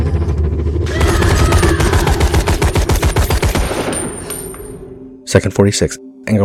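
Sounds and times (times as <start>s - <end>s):
rifle fire in a film scene: 0.9s - 4.8s
speech: 5.3s - 6.4s.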